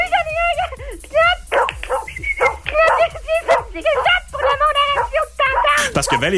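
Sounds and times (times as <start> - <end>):
dog barking with yips, whines and whimpers: 1.4 - 6.3
speech: 6.2 - 6.3.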